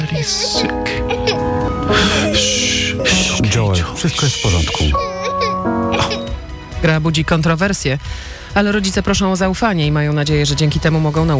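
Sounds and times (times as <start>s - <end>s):
child crying in a video game trailer: 0.0s - 3.4s, 4.0s - 6.4s
speech: 0.2s - 1.0s, 3.8s - 6.2s, 6.8s - 11.3s.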